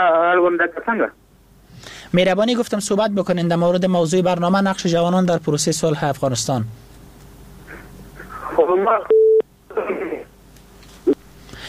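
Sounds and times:
speech: 0:00.0 - 0:01.2, 0:02.1 - 0:07.0, 0:08.6 - 0:09.1
steady electronic telephone tone from a dropped call: 0:09.0 - 0:09.5.

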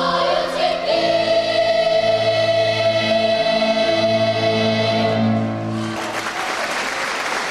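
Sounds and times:
children from Artsakh singing a melody: 0:00.0 - 0:05.6
audience applause from a packed hall: 0:05.8 - 0:07.4.

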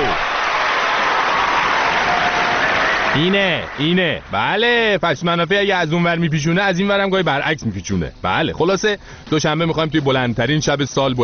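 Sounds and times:
applause: 0:00.0 - 0:04.4
speech: 0:03.2 - 0:11.2.

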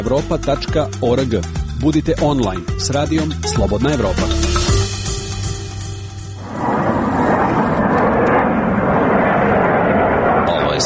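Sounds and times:
speech: 0:00.0 - 0:04.5
Ukrainian Sukhoi Su-27 military jet manoeuvring over Kramatorsk airfield: 0:05.0 - 0:10.8.

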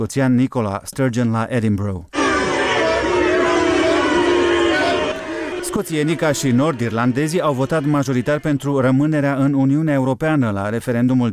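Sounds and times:
speech: 0:00.0 - 0:02.2, 0:05.7 - 0:11.3
crowd booing on a politician's arrival: 0:02.2 - 0:09.0.

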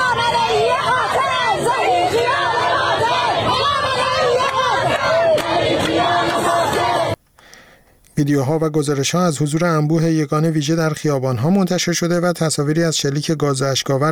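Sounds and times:
protest crowd chanting slogans in street: 0:00.0 - 0:07.2
speech: 0:08.2 - 0:14.1.

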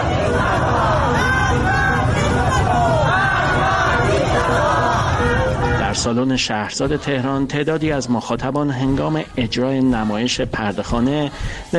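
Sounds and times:
street babble: 0:00.0 - 0:11.7
young protesters chanting slogans on a Tehran street: 0:00.0 - 0:11.7
speech: 0:06.0 - 0:11.7.

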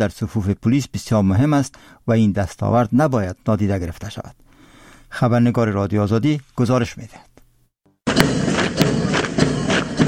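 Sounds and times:
speech: 0:00.0 - 0:04.4, 0:05.1 - 0:07.3, 0:08.2 - 0:08.4
marching footsteps during military drill: 0:08.1 - 0:10.0.

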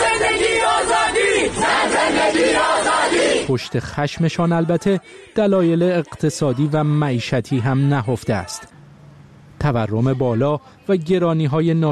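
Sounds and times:
protest crowd chanting slogans: 0:00.0 - 0:08.7
speech: 0:03.5 - 0:08.8, 0:09.6 - 0:11.8.

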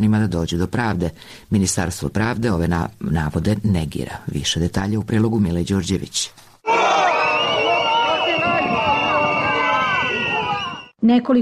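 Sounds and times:
speech: 0:00.0 - 0:06.5, 0:11.0 - 0:11.4
large crowd shouting and chanting: 0:06.7 - 0:10.9.

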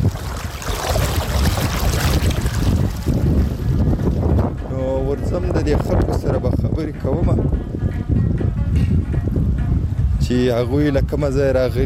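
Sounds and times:
rushing water: 0:00.0 - 0:04.3
wind buffeting the microphone: 0:00.0 - 0:11.8
speech: 0:05.7 - 0:07.4, 0:10.3 - 0:11.8.

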